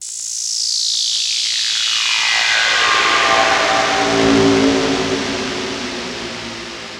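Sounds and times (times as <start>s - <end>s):
left synth production effect: 1.9s - 6.9s.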